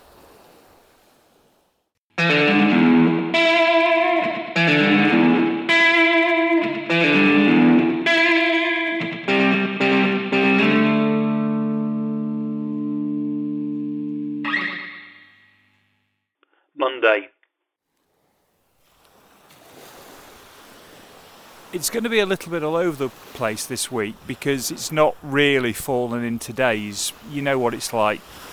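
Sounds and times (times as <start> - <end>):
twangy electric guitar processed with effects: 2.1 - 15.3
speech: 21.8 - 28.5.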